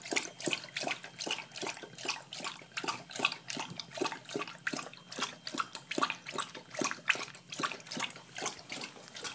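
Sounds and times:
dog drinking water: 0.0s - 9.3s.

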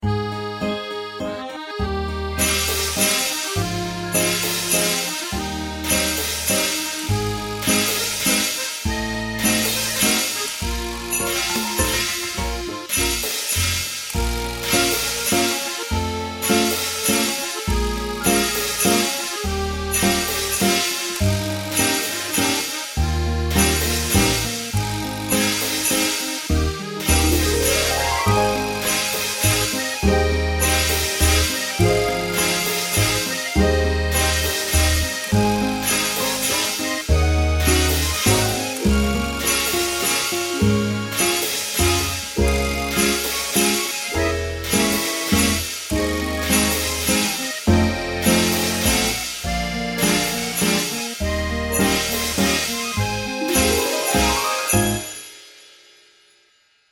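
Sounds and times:
3/4 waltz: 0.0s - 55.5s.

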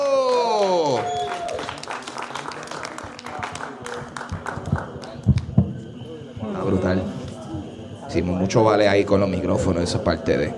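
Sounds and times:
audience applause: 0.0s - 5.6s
speech: 8.2s - 10.5s.

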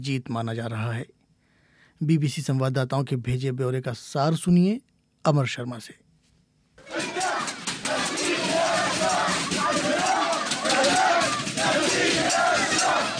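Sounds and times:
speech: 0.0s - 1.2s, 2.0s - 6.0s
crowd chanting slogans and cheering in Aleppo, Syria, celebrating an army victory: 6.8s - 13.1s.

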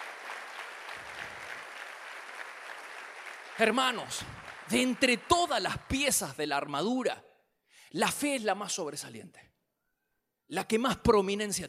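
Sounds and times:
loud applause: 0.0s - 6.3s
speech: 3.6s - 7.3s, 7.9s - 9.5s, 10.5s - 11.6s.

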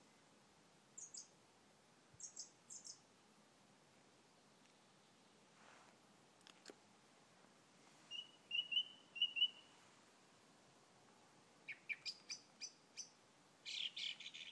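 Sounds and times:
birdsong on a quiet evening: 1.0s - 1.3s, 2.2s - 3.0s, 8.1s - 9.8s, 11.6s - 14.5s.

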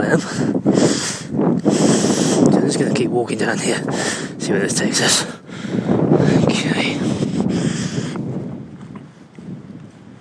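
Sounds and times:
wind outdoors: 0.0s - 10.1s
speech: 0.1s - 0.4s, 2.9s - 6.0s.

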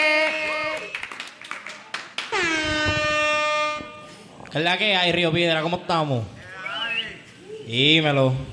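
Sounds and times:
crowd clapping and cheering: 0.1s - 2.5s
loud sustained air horn blasts: 2.3s - 4.3s
speech: 4.5s - 6.3s, 7.7s - 8.5s.

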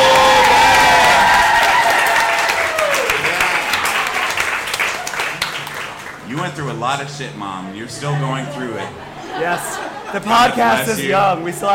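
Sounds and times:
audience applause: 0.0s - 6.5s
speech: 6.9s - 11.7s
laughter: 8.0s - 11.2s.

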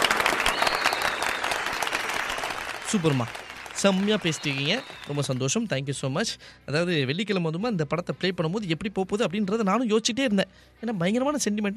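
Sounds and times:
audience applause for two callers: 0.0s - 5.7s
speech: 2.9s - 11.7s.

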